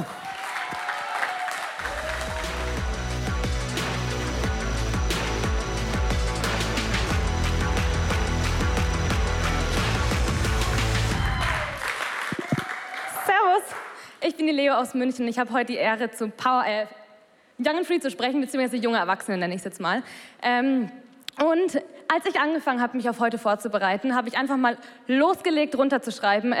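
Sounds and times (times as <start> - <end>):
audience applause: 0.0 - 14.0
speech: 14.5 - 17.0, 17.6 - 26.5.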